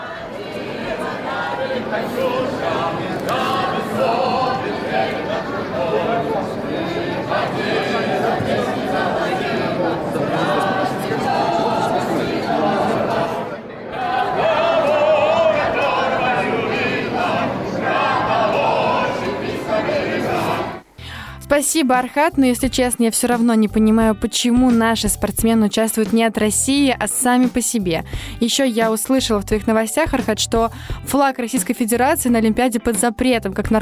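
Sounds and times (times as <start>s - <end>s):
large crowd singing a Russian folk song: 0.0s - 21.1s
speech: 21.6s - 33.8s.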